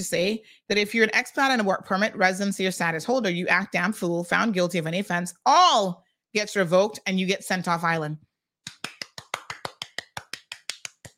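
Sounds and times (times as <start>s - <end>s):
speech: 0.0s - 8.3s
sharp hand claps: 8.6s - 11.1s.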